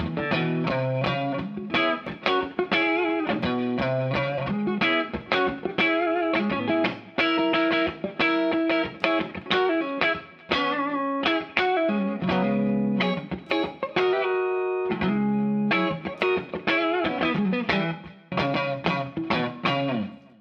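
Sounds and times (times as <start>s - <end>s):
bluesy clean guitar: 0.0s - 20.3s.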